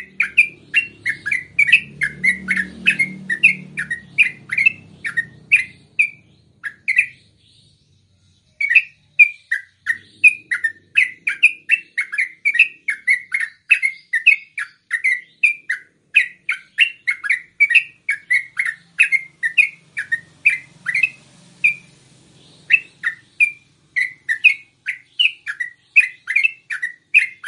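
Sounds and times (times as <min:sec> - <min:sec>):
yellow-vented bulbul producing chirped down-slurred notes: 0:00.0 - 0:07.3, 0:08.6 - 0:27.4.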